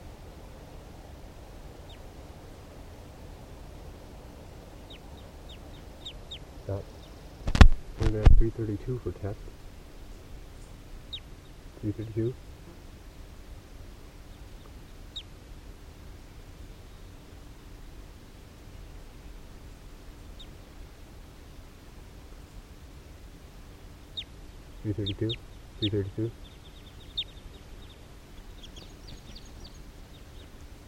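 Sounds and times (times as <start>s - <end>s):
wild birds calling: 1.4s - 3.3s, 4.0s - 7.5s, 8.6s - 15.4s, 19.2s - 30.8s
speech: 6.7s - 7.0s, 8.1s - 9.6s, 11.8s - 12.5s, 24.9s - 26.5s.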